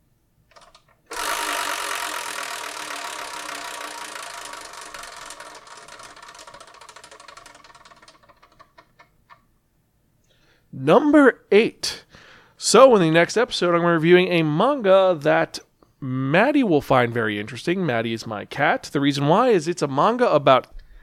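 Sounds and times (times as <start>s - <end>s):
numbered wheel spinning with rapid ticks: 0.5s - 9.4s
speech: 10.8s - 12.0s, 12.6s - 20.8s.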